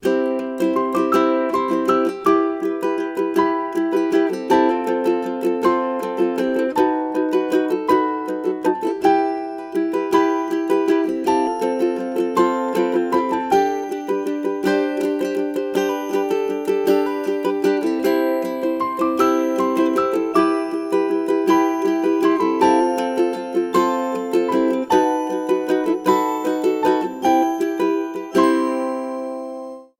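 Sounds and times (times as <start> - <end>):
sweet small ukulele song: 0.0 - 29.9.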